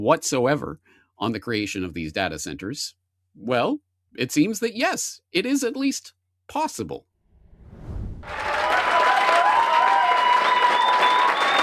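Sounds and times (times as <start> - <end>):
speech: 0.0 - 7.1
low rumble: 7.3 - 9.2
crowd applauding and cheering: 8.4 - 11.6.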